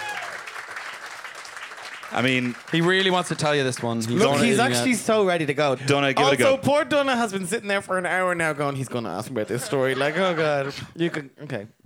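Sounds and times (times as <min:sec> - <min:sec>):
crowd applause: 0:00.0 - 0:04.9
speech: 0:02.1 - 0:11.8
laughter: 0:08.7 - 0:11.4.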